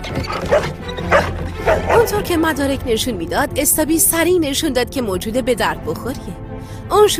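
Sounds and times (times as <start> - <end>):
dog: 0.3 - 2.2
speech: 2.1 - 6.4, 6.9 - 7.1.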